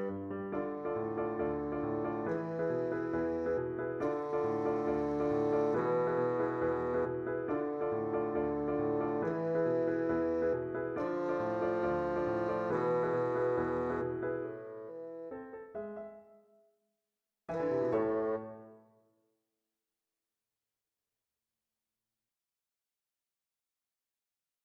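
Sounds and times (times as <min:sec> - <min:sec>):
rhythmic bassoon: 0:00.7 - 0:14.4, 0:17.5 - 0:18.6.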